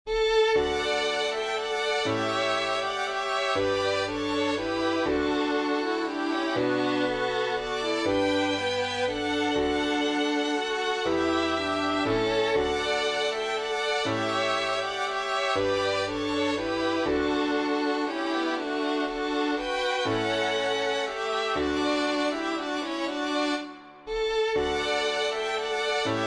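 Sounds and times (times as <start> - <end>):
waltz music: 0.1 - 26.2.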